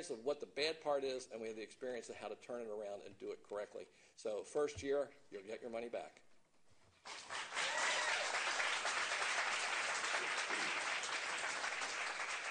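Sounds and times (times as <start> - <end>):
speech: 0.0 - 6.3
audience applause: 7.1 - 12.4.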